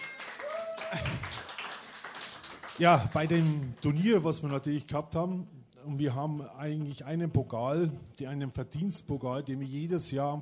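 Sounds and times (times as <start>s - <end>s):
audience clapping at a carnival club gathering: 0.0s - 4.8s
speech: 2.8s - 10.4s.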